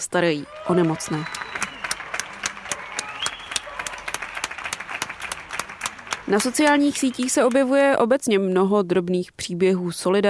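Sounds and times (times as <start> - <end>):
speech: 0.0 - 1.4, 6.3 - 10.2
faint cheering: 0.4 - 6.3
balcony applause for health workers: 0.4 - 7.9.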